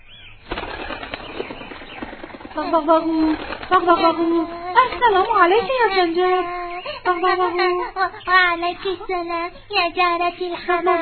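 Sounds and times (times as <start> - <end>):
pigeon flying back to its nest: 0.4 - 6.1
person narrating: 2.6 - 11.0
speech: 2.6 - 11.0.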